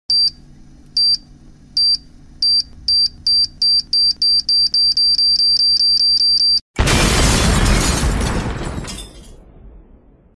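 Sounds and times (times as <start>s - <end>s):
time bomb: 6.8s - 10.3s.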